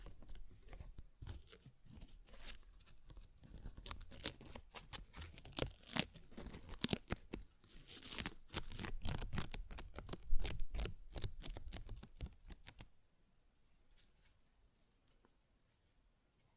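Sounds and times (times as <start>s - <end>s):
paper ripped and torn: 3.5s - 12.8s.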